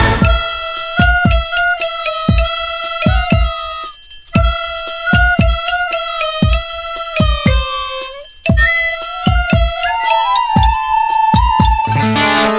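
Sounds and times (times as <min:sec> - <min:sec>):
anime ringtone: 0:00.2 - 0:12.5.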